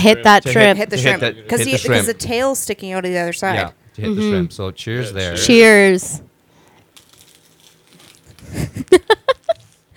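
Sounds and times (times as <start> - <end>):
speech: 0.0 - 6.2, 8.5 - 9.2
crunchy bite of fried spring roll: 6.8 - 8.5.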